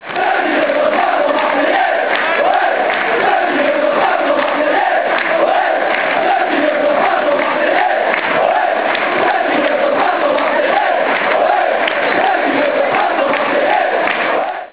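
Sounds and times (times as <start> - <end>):
crowd chanting: 0.0 - 14.7.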